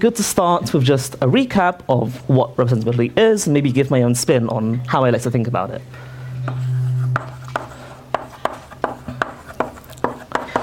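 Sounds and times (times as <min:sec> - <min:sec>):
speech: 0:00.0 - 0:06.7
low steady hum: 0:00.0 - 0:10.4
writing on a board during a lecture: 0:06.4 - 0:10.6.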